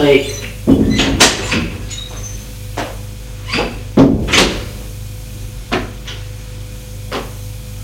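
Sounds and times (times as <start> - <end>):
low steady hum: 0.0 - 7.8
door opening: 0.4 - 4.7.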